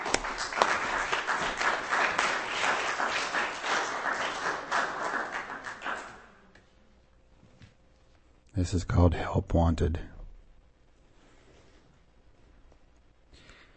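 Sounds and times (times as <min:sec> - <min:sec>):
audience clapping for a performer at a reading: 0:00.0 - 0:06.6
speech: 0:08.6 - 0:10.1.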